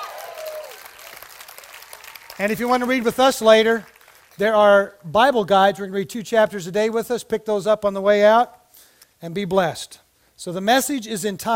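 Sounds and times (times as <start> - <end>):
audience hand clapping: 0.0 - 4.4
speech: 2.4 - 8.6, 9.2 - 11.5.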